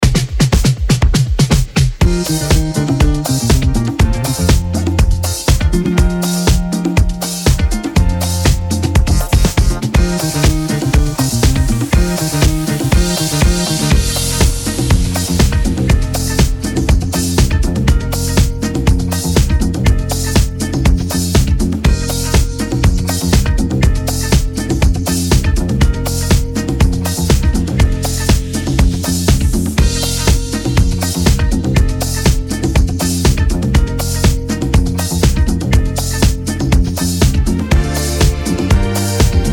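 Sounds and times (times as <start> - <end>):
instrumental music: 0.0 - 39.5.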